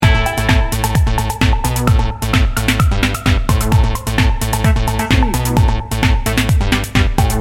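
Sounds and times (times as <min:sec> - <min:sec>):
electro energy music loop: 0:00.0 - 0:07.3.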